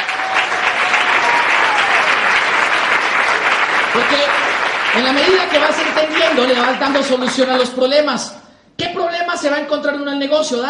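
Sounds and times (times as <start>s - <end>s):
audience applause: 0.0s - 7.6s
speech: 4.0s - 10.6s.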